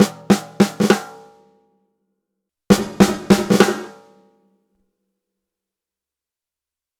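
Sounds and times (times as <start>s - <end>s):
Sony DRE 2000 real snare sequence: 0.0s - 1.1s, 2.8s - 4.0s.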